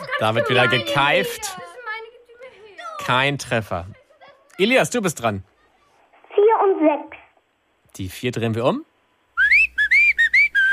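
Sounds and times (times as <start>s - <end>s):
speech: 0.2s - 1.6s, 3.1s - 4.0s, 4.6s - 5.5s, 6.6s - 7.2s, 8.0s - 8.9s
cheerful whistling: 9.3s - 10.7s.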